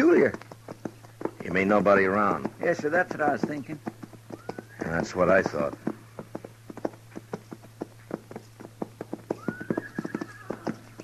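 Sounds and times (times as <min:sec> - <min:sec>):
horses clip-clopping: 0:00.0 - 0:11.0
speech: 0:00.3 - 0:00.5, 0:01.5 - 0:03.9, 0:04.8 - 0:05.9
horses whinnying: 0:04.0 - 0:07.3, 0:08.6 - 0:11.0.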